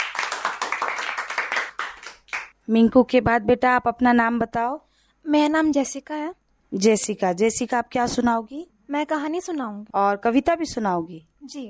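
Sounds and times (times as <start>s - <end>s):
children clapping: 0.0s - 2.5s
speech: 2.7s - 11.6s.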